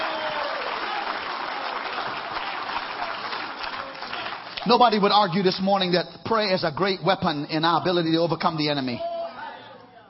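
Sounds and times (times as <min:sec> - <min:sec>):
audience clapping: 0:00.0 - 0:05.3
speech: 0:04.6 - 0:09.1.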